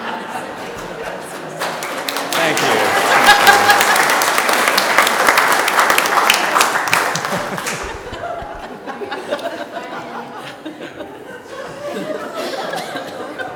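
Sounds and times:
laughter: 0.0 - 0.8, 2.6 - 4.3, 6.9 - 13.5
audience applause: 1.3 - 8.8.

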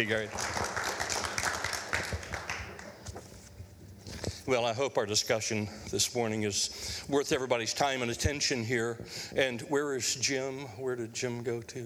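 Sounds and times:
speech: 0.0 - 0.6, 4.5 - 11.8
audience applause welcoming a speaker: 0.0 - 3.1.

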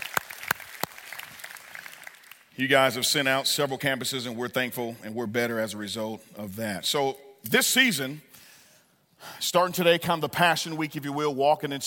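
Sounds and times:
audience applause: 0.0 - 2.5
speech: 2.6 - 8.4, 9.2 - 11.8.

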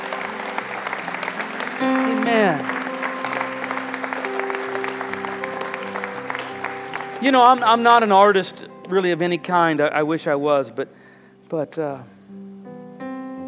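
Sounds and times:
audience applause and cheering: 0.0 - 8.4
speech: 2.2 - 2.7, 7.2 - 12.1.

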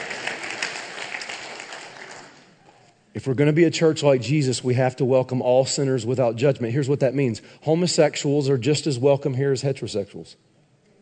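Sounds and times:
light polite golf clap from audience: 0.0 - 2.5
speech: 3.2 - 10.5.

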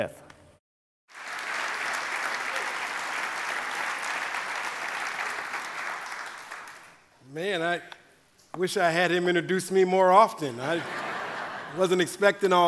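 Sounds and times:
speech: 0.0 - 0.2, 7.3 - 11.0, 11.7 - 12.6
audience applause welcoming a guest speaker at a church conference: 1.1 - 7.0
laughter: 10.6 - 12.2.

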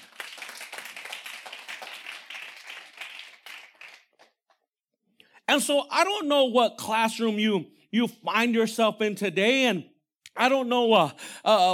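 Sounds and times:
audience applause: 0.0 - 4.4
speech: 5.5 - 11.7.

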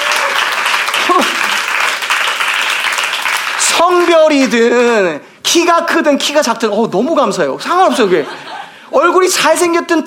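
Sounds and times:
crowd clapping: 0.0 - 4.5
speech: 3.8 - 10.0.

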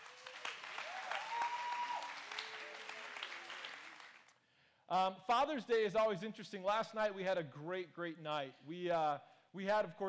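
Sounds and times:
audience applauding: 0.0 - 4.3
speech: 4.9 - 10.0.

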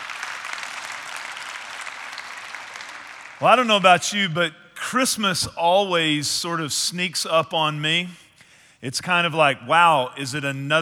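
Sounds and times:
church congregation applauding to welcome online viewers: 0.0 - 4.4
speech: 3.4 - 8.2, 8.8 - 10.8.

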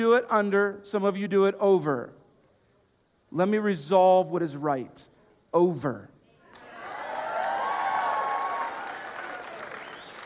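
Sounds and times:
speech: 0.0 - 2.2, 3.3 - 6.1
audience clapping and applause: 6.5 - 10.2.

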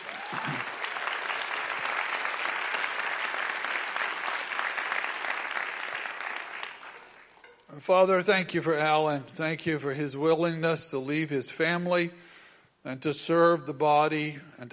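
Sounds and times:
audience applause at a church prayer gathering: 0.0 - 7.3
speech: 0.3 - 0.7, 7.8 - 14.7.

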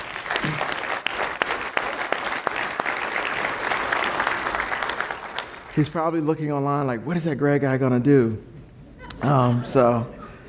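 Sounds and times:
audience applause: 0.0 - 6.0
speech: 5.8 - 8.5, 9.2 - 10.2.

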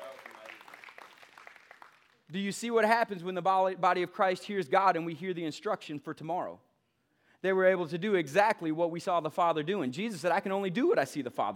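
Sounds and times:
crowd clapping hands: 0.0 - 2.4
speech: 2.3 - 6.7, 7.4 - 11.5.

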